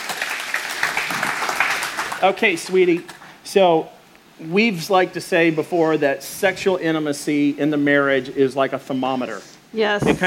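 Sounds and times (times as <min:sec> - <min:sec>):
audience applause: 0:00.0 - 0:03.3
speech: 0:02.2 - 0:10.2.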